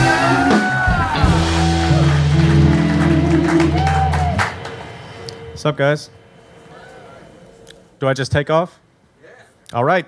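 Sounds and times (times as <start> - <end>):
crowd clapping and cheering: 0.0 - 5.5
low droning musical tone: 1.2 - 8.0
speech: 5.6 - 6.2, 8.0 - 8.8, 9.7 - 10.0.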